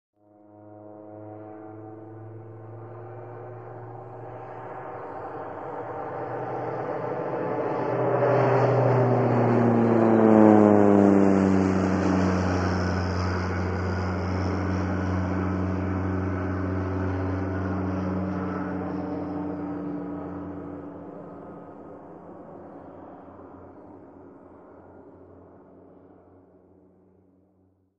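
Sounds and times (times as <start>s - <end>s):
small propeller airplane: 0.2s - 27.9s.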